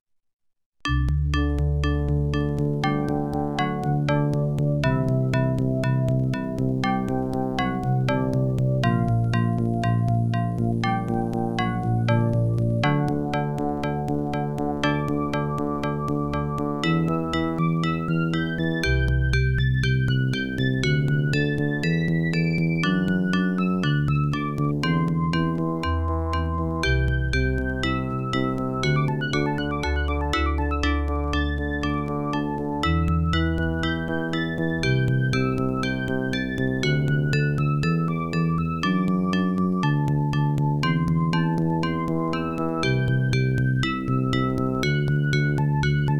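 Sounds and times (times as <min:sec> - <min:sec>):
OPL2 FM synth chip music: 0:00.8 - 0:46.1.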